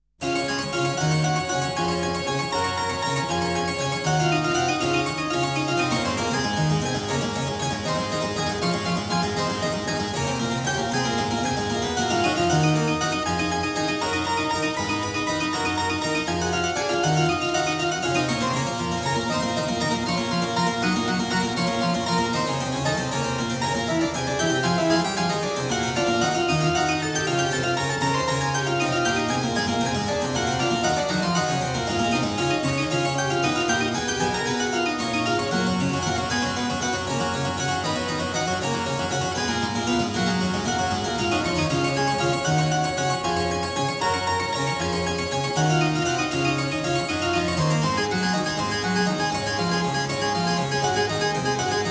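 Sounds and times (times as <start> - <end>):
prelude in C-sharp major on clavier: 0.2 - 51.8.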